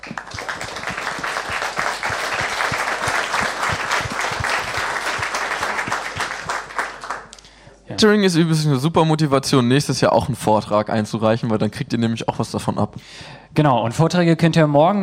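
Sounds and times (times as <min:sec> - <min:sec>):
audience applause: 0:00.0 - 0:07.4
speech: 0:08.0 - 0:15.0.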